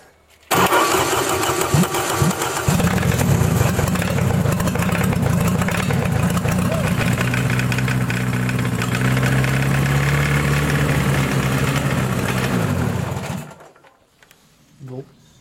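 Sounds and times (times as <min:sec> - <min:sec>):
engine starting and idling unevenly: 0:01.4 - 0:13.6.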